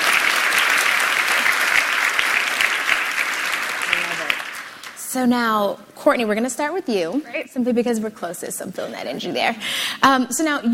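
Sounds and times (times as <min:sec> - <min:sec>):
audience applause: 0:00.0 - 0:05.0
speech: 0:05.2 - 0:10.7.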